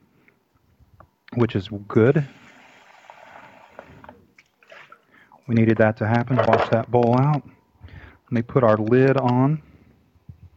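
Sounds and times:
speech: 1.4s - 2.4s, 5.5s - 7.6s, 8.3s - 9.7s
liquid poured into a pan over chicken: 2.2s - 5.0s.

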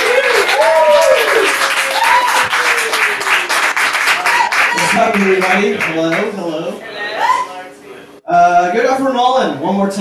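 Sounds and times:
audience applause for comedian: 0.0s - 6.4s
speech: 5.1s - 6.9s, 8.7s - 10.0s.

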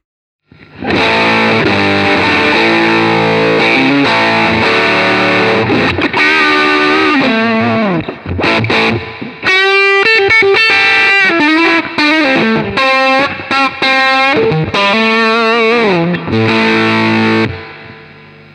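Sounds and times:
electric guitar through stacked overdrive pedals: 0.5s - 18.5s.

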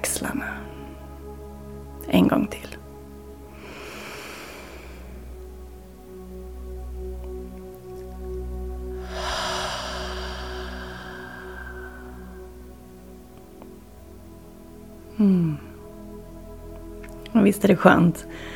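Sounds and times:
speech: 2.1s - 2.8s, 15.2s - 15.6s, 17.4s - 18.5s
deep breaths in through the nose, out through the mouth: 3.5s - 5.4s, 9.0s - 13.2s, 18.3s - 18.5s.

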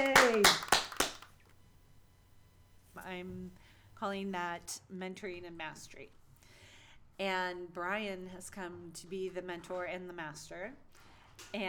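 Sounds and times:
speech: 0.0s - 0.7s, 3.2s - 6.2s, 7.2s - 10.8s, 11.4s - 11.6s
hand clap: 0.0s - 1.3s.

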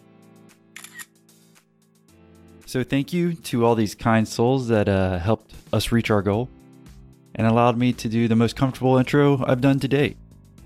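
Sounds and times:
camera shutter clicks taking a selfie: 0.8s - 1.1s
speech: 2.7s - 6.6s, 7.4s - 10.2s.

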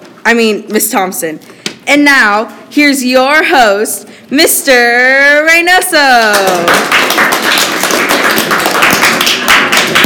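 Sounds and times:
speech: 0.2s - 7.4s
students applauding: 6.3s - 10.0s.

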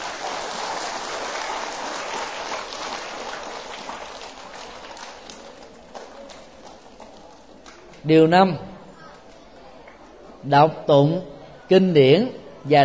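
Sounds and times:
large crowd applauding: 0.0s - 7.9s
speech: 8.0s - 8.7s, 10.5s - 12.8s.

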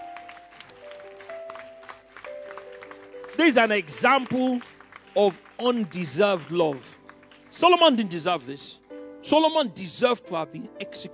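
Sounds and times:
crowd clapping: 0.0s - 8.5s
speech: 3.4s - 7.0s, 7.6s - 11.1s.

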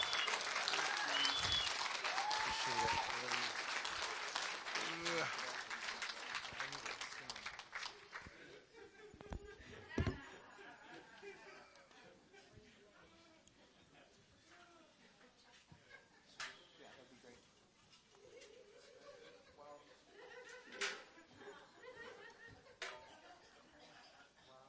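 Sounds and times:
church congregation applause standing welcome for its founder: 0.0s - 8.3s
laughter: 7.8s - 14.2s, 18.1s - 24.6s.

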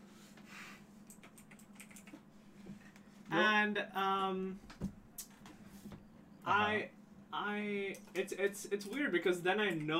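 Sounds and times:
fingers typing on a computer keyboard: 1.1s - 2.2s
speech: 3.3s - 4.9s, 6.5s - 9.9s.

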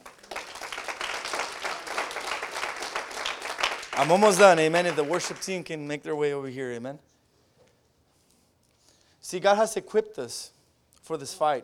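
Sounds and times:
crowd clapping: 0.0s - 5.7s
speech: 4.0s - 7.1s, 9.3s - 11.6s.

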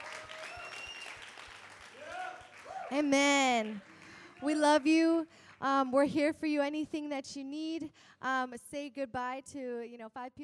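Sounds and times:
audience applause: 0.0s - 4.5s
speech: 2.9s - 10.4s.

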